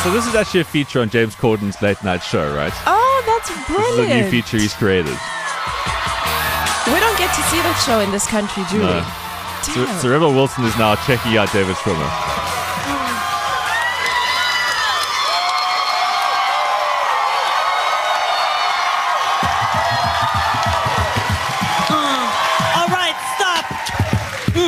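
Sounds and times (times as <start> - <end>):
speech: 0.0 - 6.0, 6.8 - 12.5
audience cheering and whooping: 0.0 - 24.6.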